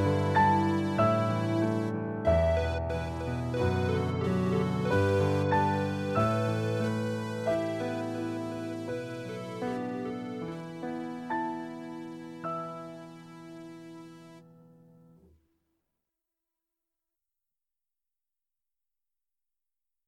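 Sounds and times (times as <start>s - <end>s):
piano parts: 0.0s - 15.4s.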